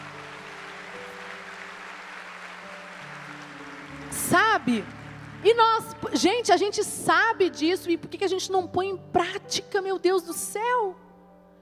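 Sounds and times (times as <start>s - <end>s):
audience applause: 0.0s - 6.0s
speech: 4.1s - 11.1s.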